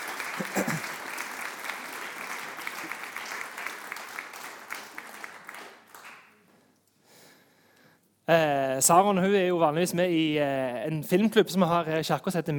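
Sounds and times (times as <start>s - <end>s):
audience applause: 0.0s - 6.4s
speech: 8.3s - 12.5s.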